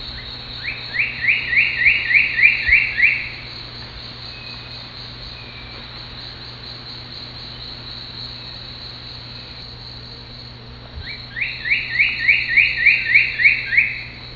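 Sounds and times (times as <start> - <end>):
cocoa woodcreeper whistled notes: 0.0 - 3.5, 11.0 - 14.2.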